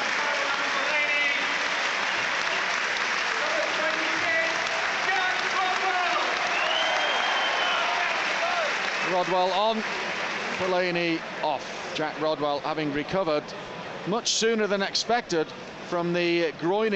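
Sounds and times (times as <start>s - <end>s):
football commentator talking: 0.0s - 1.6s, 3.3s - 6.4s, 10.6s - 16.9s
football crowd standing ovation at Goodison Park during Everton versus Sunderland match: 0.0s - 11.4s
speech: 9.2s - 10.0s, 10.6s - 16.9s.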